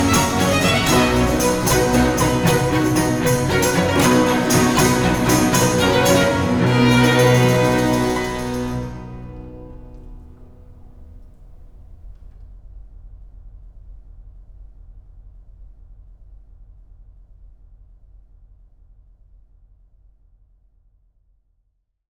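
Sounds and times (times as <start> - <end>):
strings and basso continuo playing a presto in C major: 0.0 - 10.5.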